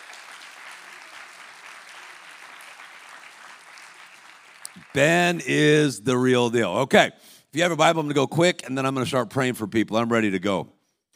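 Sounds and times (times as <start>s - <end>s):
audience clapping: 0.0s - 5.8s
speech: 5.0s - 10.8s.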